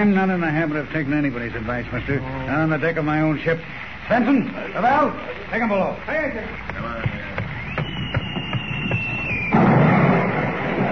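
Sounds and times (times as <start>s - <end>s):
speech: 0.0s - 7.4s
shell whistling across a ship's bow: 7.4s - 9.7s
loud blast with roaring rumble: 9.0s - 10.9s.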